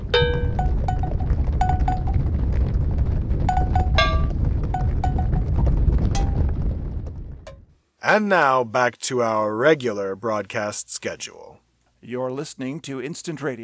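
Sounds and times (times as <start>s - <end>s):
herd of cows moving through the studio: 0.0s - 7.6s
speech: 8.0s - 13.6s.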